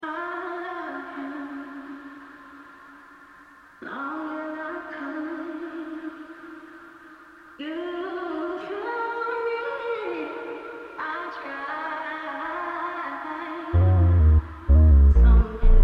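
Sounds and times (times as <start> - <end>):
R&B music: 13.8 - 15.7.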